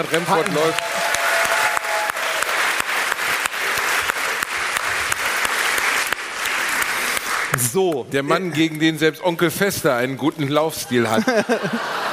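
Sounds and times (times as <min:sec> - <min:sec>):
speech: 0:00.0 - 0:01.0, 0:07.6 - 0:12.1
audience applause: 0:00.0 - 0:08.6
laughter: 0:10.7 - 0:12.1.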